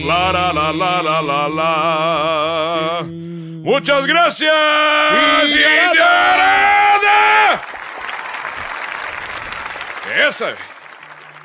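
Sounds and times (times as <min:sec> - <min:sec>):
speech: 0:00.0 - 0:07.7, 0:10.1 - 0:10.7
audience applause: 0:05.2 - 0:11.4.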